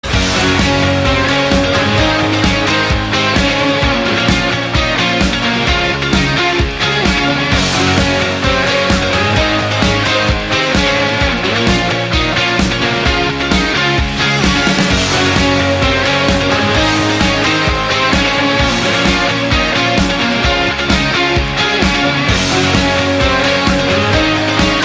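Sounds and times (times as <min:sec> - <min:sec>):
upbeat party rock ringtone: 0:00.0 - 0:24.8.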